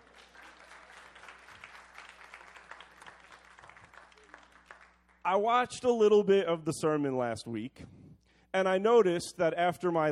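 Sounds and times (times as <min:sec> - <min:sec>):
audience clapping: 0:00.0 - 0:05.2
speech: 0:05.3 - 0:10.1.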